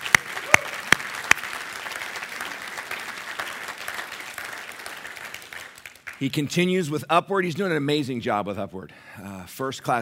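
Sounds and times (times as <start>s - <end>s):
church congregation sharp loud claps welcoming a new next generation director: 0.0s - 6.3s
speech: 6.2s - 9.9s.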